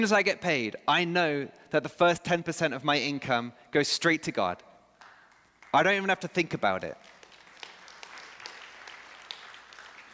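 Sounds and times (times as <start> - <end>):
speech: 0.0 - 4.7, 5.7 - 7.1
audience applause: 7.0 - 10.1.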